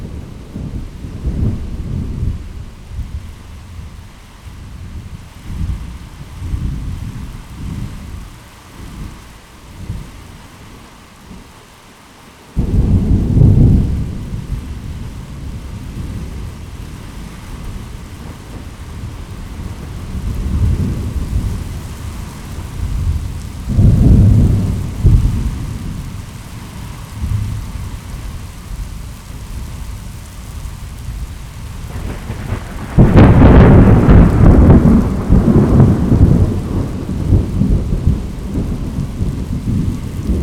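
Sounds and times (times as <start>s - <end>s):
thunder in a thunderstorm: 0.0s - 3.4s, 12.6s - 28.9s, 31.0s - 40.4s.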